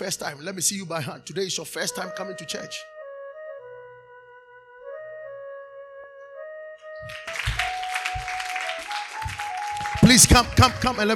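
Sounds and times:
speech: 0.0s - 2.9s, 10.1s - 11.1s
sustained keyboard chords: 2.0s - 11.1s
audience clapping: 7.1s - 11.1s.

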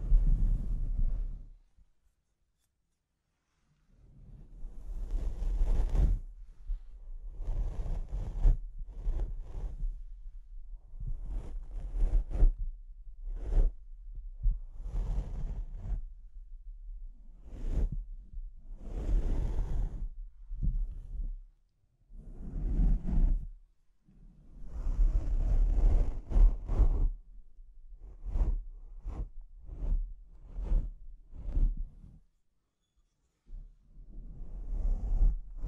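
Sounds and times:
scratching and rubbing on a microphone: 0.0s - 1.4s, 4.6s - 6.4s, 7.2s - 10.2s, 10.9s - 12.6s, 13.2s - 13.8s, 14.4s - 16.0s, 17.4s - 18.1s, 18.7s - 21.3s, 22.2s - 23.6s, 24.6s - 27.2s, 28.0s - 32.2s, 34.1s - 35.6s.

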